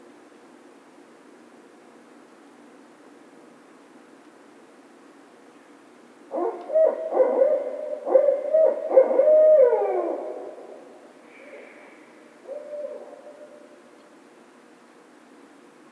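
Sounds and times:
barred owl hooting: 6.3 - 13.8.

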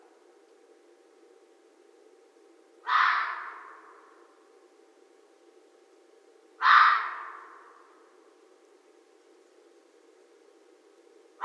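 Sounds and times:
red fox hoarse bark: 2.9 - 3.8, 6.6 - 7.6.

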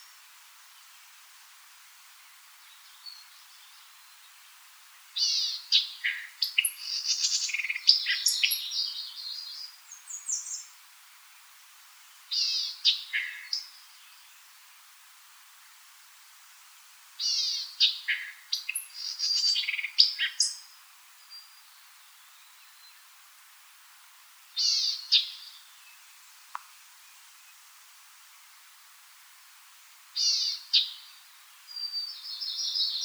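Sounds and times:
White-eyed Vireo: 0.0 - 33.0.

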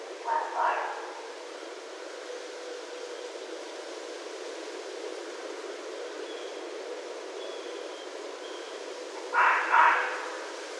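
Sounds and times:
red fox calling: 0.2 - 1.3, 9.2 - 10.6.

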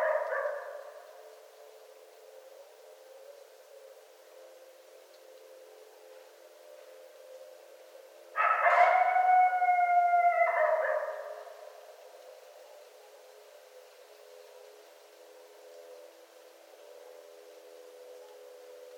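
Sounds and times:
coyotes howling at night: 0.0 - 1.2, 8.4 - 11.8.

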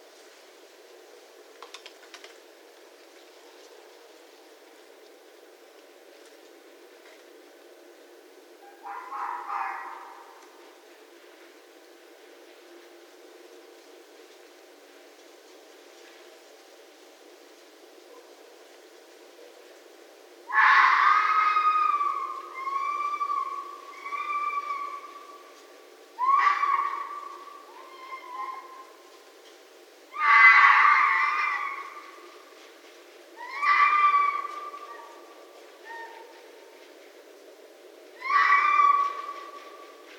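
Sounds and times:
red fox calling: 8.6 - 10.6, 20.5 - 29.1, 30.1 - 32.6, 33.3 - 36.9, 38.1 - 40.1.

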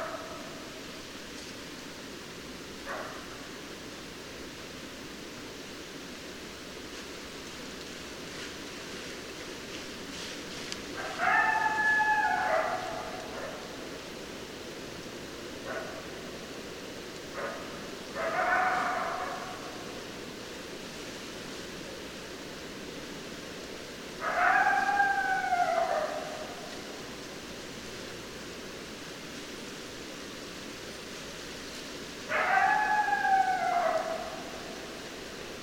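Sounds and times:
hiss: 0.0 - 35.6
coyote howling: 11.0 - 13.8, 18.2 - 19.8, 24.2 - 27.0, 32.3 - 35.1.

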